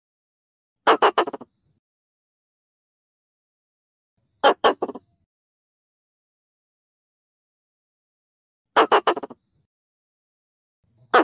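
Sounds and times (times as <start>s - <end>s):
Pallas's squirrel harsh grating calls: 0.9s - 1.5s, 4.4s - 5.0s, 8.8s - 9.4s.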